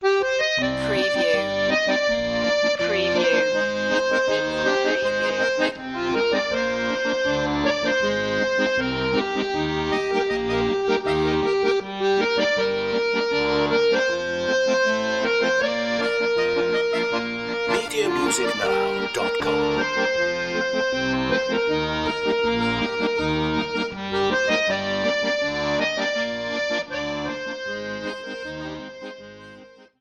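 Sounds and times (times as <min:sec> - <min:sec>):
cheerful accordion: 0:00.0 - 0:29.9.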